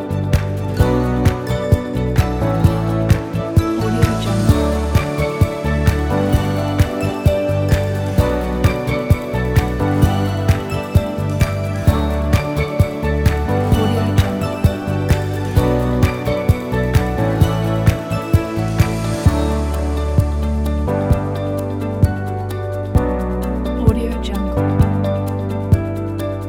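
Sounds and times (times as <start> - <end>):
inspiring corporate business music: 0.0 - 26.4.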